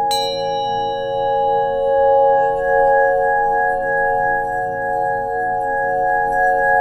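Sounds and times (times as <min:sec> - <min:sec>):
bright metallic singing bowl strike: 0:00.1 - 0:03.1
Tibetan singing bowls ringing with sustained tones: 0:00.1 - 0:06.7.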